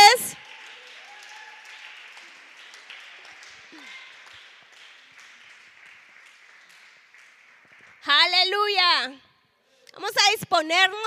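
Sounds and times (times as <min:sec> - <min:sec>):
audience clapping: 0:00.0 - 0:08.8
speech: 0:10.0 - 0:11.0.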